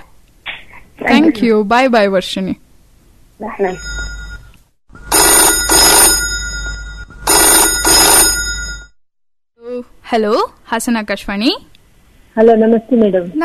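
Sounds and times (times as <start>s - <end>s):
speech: 1.2s - 2.6s, 3.4s - 4.0s, 10.1s - 11.7s, 12.4s - 13.4s
telephone ringing with an incoming call to a Hassan radio farm phone-in programme: 3.7s - 9.0s.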